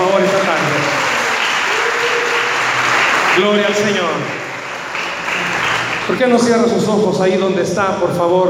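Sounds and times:
audience applauding: 0.0 - 6.6
speech: 3.4 - 4.4, 6.1 - 8.4.

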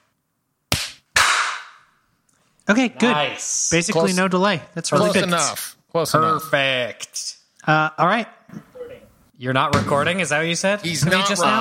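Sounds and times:
group clapping in unison: 0.7 - 1.8
speech: 2.7 - 8.7, 9.4 - 11.5.

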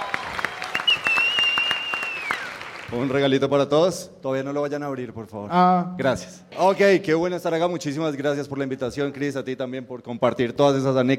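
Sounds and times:
scattered audience clapping for a mentalist: 0.0 - 3.6
thin high whistling tone: 0.7 - 2.5
speech: 2.9 - 11.1.

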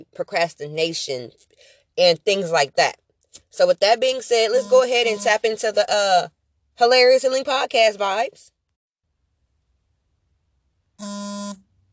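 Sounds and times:
speech: 0.0 - 8.5, 11.0 - 11.6
mobile phone vibrating: 11.0 - 11.6.

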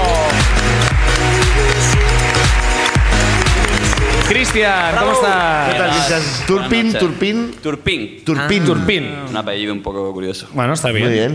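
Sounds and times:
audience applauding: 0.0 - 7.8
speech: 4.3 - 11.3.

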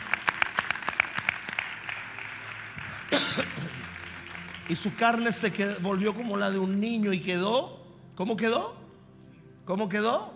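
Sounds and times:
one person clapping: 0.0 - 4.8
speech: 4.7 - 8.8, 9.7 - 10.3.

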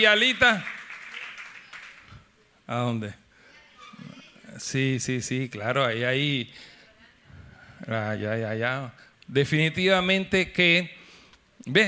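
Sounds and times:
speech: 0.0 - 0.8, 2.7 - 3.2, 4.6 - 6.7, 7.8 - 11.0, 11.6 - 11.8
applause: 0.0 - 2.3.

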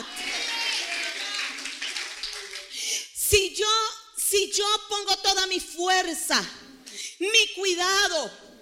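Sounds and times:
audience applauding: 0.1 - 2.8
speech: 4.8 - 8.5.

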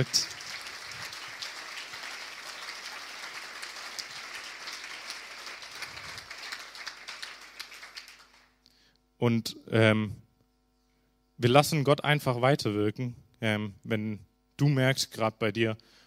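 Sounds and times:
speech: 0.0 - 0.4, 9.2 - 10.2, 11.4 - 16.0
audience applause: 0.0 - 8.6.

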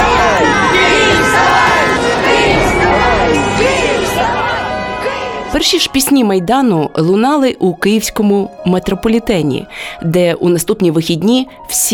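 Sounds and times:
protest crowd shouting: 0.0 - 5.9
car horns: 0.0 - 6.3
speech: 5.6 - 11.9.

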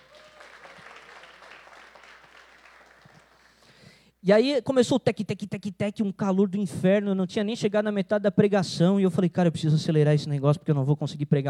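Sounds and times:
round of applause: 0.0 - 3.9
speech: 4.2 - 11.4.

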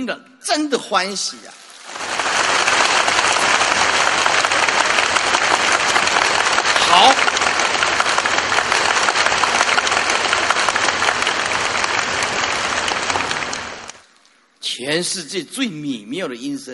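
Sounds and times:
speech: 0.0 - 1.6, 14.8 - 16.7
audience applause: 1.8 - 14.0.

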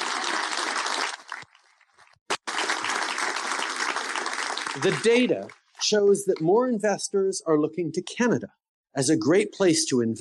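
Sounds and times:
audience applause: 0.0 - 5.6
speech: 4.8 - 10.1.

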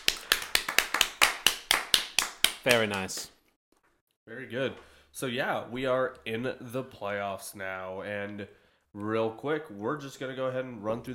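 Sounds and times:
hand clapping: 0.0 - 3.4
speech: 2.6 - 3.4, 4.3 - 11.1.

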